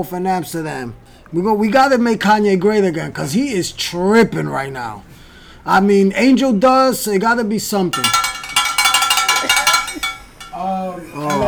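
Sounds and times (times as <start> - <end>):
speech: 0.0 - 8.2, 10.6 - 11.4
hand bell ringing: 8.0 - 10.6, 11.2 - 11.4.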